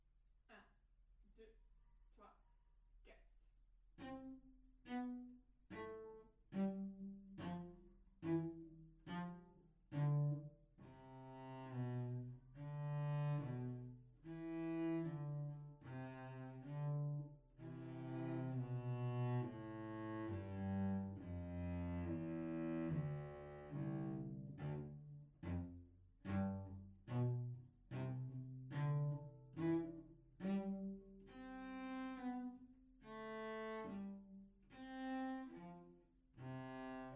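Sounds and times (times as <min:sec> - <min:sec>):
random solo cello phrase: 0:04.0 - 0:37.1.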